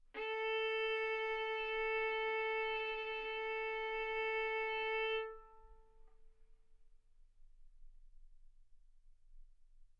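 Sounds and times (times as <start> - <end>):
violin bowed mezzo-forte on the A string, A4 and B4: 0.2 - 5.8.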